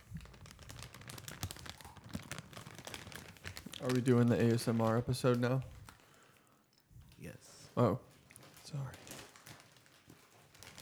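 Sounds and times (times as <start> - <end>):
crinkly chip bag crunching: 0.0 - 6.1, 8.3 - 10.7
speech: 3.8 - 5.8, 7.8 - 8.1.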